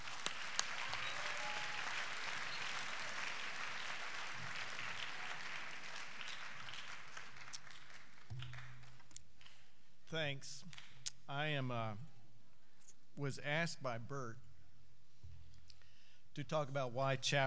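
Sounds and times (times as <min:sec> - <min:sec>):
audience applause at a Baylor chapel orientation in Waco Hall: 0:00.0 - 0:09.0
speech: 0:10.1 - 0:12.1, 0:13.2 - 0:14.5, 0:16.4 - 0:17.4.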